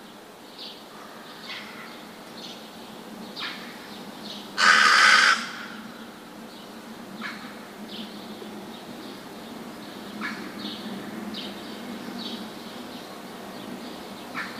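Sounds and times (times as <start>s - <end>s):
rook calling with rasping caws: 4.6s - 5.9s, 7.2s - 7.6s, 10.2s - 10.5s, 14.3s - 14.5s.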